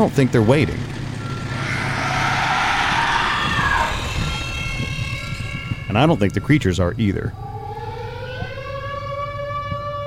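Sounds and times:
speech: 0.0s - 1.0s, 6.0s - 7.4s
low rumbling background: 0.6s - 8.3s
alarm siren: 1.1s - 10.0s.

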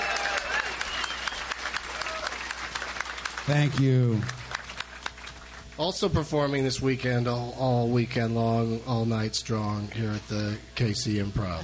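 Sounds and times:
audience applause: 0.0s - 5.8s
speech: 3.5s - 4.4s, 5.8s - 11.6s.

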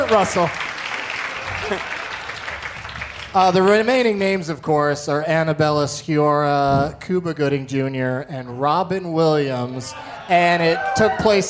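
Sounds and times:
crowd clapping: 0.0s - 4.2s
speech: 0.1s - 0.6s, 1.5s - 2.0s, 3.3s - 11.4s.

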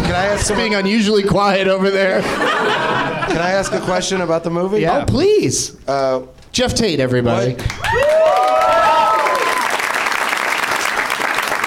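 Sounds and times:
laughter: 0.0s - 1.2s, 2.0s - 4.7s
speech: 0.1s - 8.6s
crowd applause: 7.7s - 11.6s
whoops and whistling cheers: 7.8s - 9.8s.

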